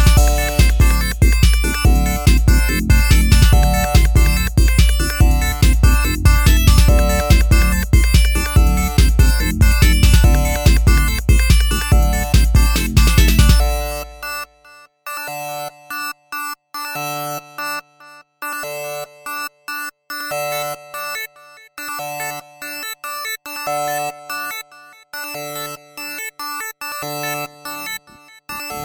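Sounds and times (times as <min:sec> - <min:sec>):
dub siren: 0:00.0 - 0:14.4.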